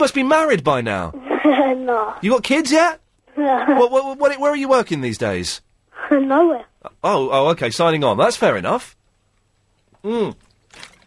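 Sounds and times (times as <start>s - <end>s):
speech: 0.0s - 9.0s, 10.0s - 10.9s
person swigging a drink of water: 10.2s - 11.0s.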